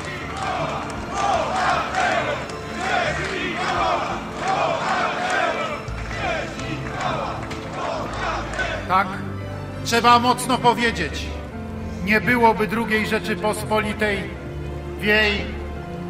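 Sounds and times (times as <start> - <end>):
crowd shouting a chant: 0.0 - 8.9
speech: 9.9 - 11.4, 12.0 - 14.4, 15.0 - 15.6.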